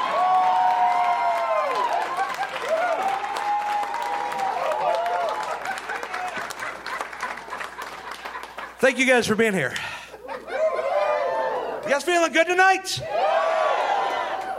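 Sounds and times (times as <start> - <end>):
voices whooping and cheering: 0.0 - 6.5, 10.3 - 11.9, 13.0 - 14.5
audience applause: 0.0 - 12.2
laughter: 5.4 - 11.2
speech: 8.8 - 10.0, 11.9 - 13.2.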